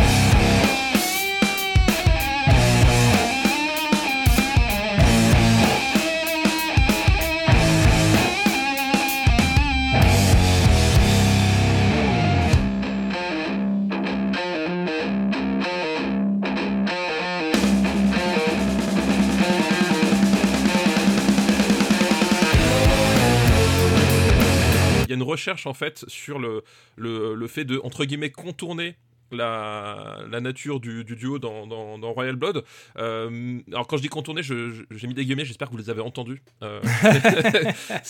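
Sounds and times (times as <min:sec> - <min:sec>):
heavily distorted bass guitar played through amps and effect pedals: 0:00.0 - 0:16.9, 0:17.5 - 0:25.1
speech: 0:25.4 - 0:38.0
laughter: 0:36.8 - 0:38.0.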